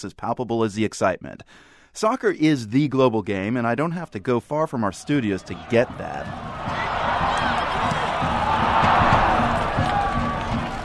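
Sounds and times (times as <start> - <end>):
speech: 0.0 - 6.8
Mexico soccer fans cheering at Foxborough Stadium: 4.7 - 10.8.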